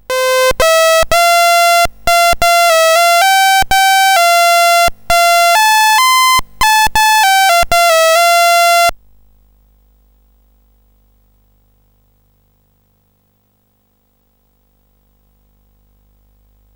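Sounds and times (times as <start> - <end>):
CSG8580R5 chip music: 0.0 - 8.9.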